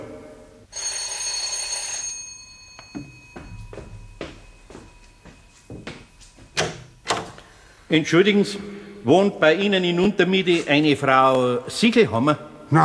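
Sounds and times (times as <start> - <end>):
electric doorbell buzzing: 0.7 - 6.6
speech: 7.9 - 12.8.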